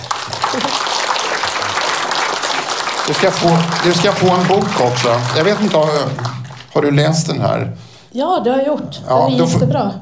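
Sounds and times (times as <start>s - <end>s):
audience applause: 0.0s - 7.4s
speech: 0.6s - 0.8s, 3.1s - 10.0s.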